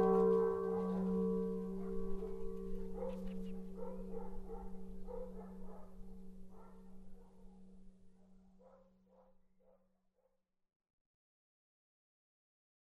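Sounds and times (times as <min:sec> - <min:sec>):
chord of bells ringing together in Jenisovice: 0:00.0 - 0:04.5.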